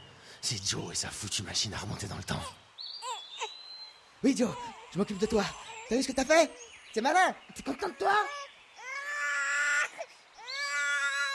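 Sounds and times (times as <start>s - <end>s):
speech: 0.4s - 2.6s, 4.2s - 8.4s
baby crying: 3.0s - 3.5s, 4.4s - 6.6s, 7.7s - 11.3s.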